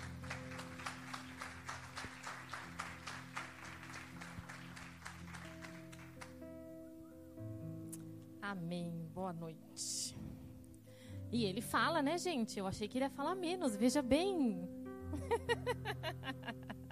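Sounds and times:
audience applauding: 0.0 - 6.6
speech: 8.5 - 10.4, 11.3 - 15.8
laughter: 15.2 - 16.9.

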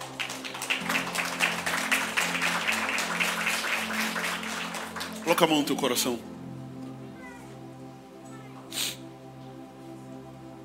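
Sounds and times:
audience applause: 0.0 - 5.9
speech: 5.3 - 6.4.

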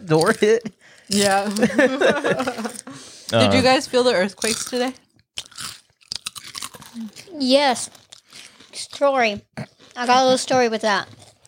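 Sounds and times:
potato chips being chewed: 0.0 - 2.8, 4.4 - 4.8, 5.4 - 9.0, 9.6 - 11.4
speech: 0.1 - 5.5, 7.0 - 8.0, 8.8 - 11.2
laughter: 1.6 - 3.7.

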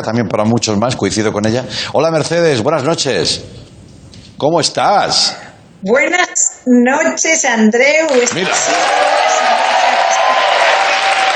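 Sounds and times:
speech: 0.0 - 3.6, 4.4 - 10.1
applause: 8.1 - 11.3.

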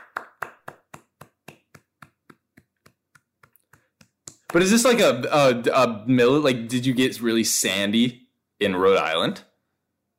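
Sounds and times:
crowd of people clapping: 0.0 - 5.1
speech: 4.5 - 9.5.

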